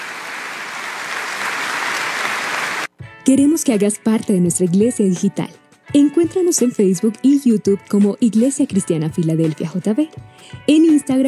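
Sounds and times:
audience applause: 0:00.0 - 0:02.9
speech: 0:03.3 - 0:11.2.

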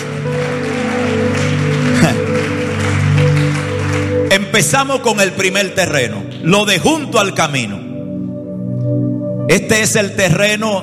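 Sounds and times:
audience applause: 0:00.0 - 0:04.7
speech: 0:04.6 - 0:07.8, 0:09.5 - 0:10.8.

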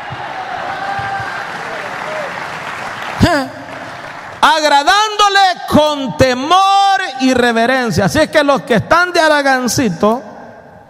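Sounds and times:
loud vocal shout: 0:00.0 - 0:03.5
audience clapping: 0:00.0 - 0:05.2
speech: 0:04.4 - 0:10.3.

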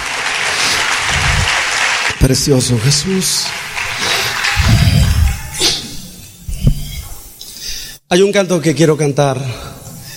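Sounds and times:
audience applause: 0:00.0 - 0:05.6
speech: 0:02.2 - 0:04.1, 0:08.1 - 0:09.7.

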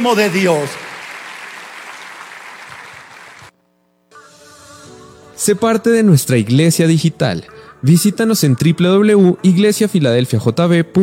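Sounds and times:
speech: 0:00.0 - 0:00.8, 0:05.5 - 0:11.0
audience applauding: 0:00.0 - 0:03.5.

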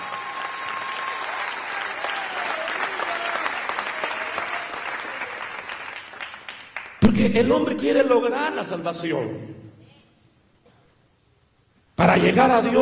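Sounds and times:
church audience applauding: 0:00.0 - 0:07.0
speech: 0:07.2 - 0:09.6, 0:12.2 - 0:12.8.

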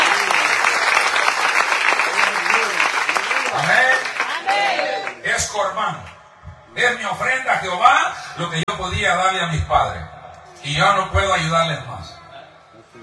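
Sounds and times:
audience applause: 0:00.0 - 0:05.2
speech: 0:03.6 - 0:03.9, 0:04.6 - 0:06.2, 0:06.8 - 0:12.2.

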